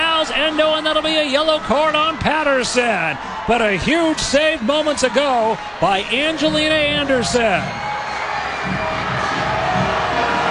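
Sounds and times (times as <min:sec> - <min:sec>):
stadium crowd booing: 0:00.0 - 0:10.4
speech: 0:00.4 - 0:07.8.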